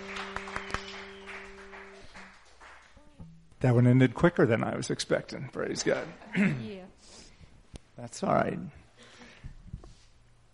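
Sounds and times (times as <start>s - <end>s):
crowd applauding and cheering: 0.0s - 3.2s
speech: 3.6s - 7.0s, 8.0s - 8.8s.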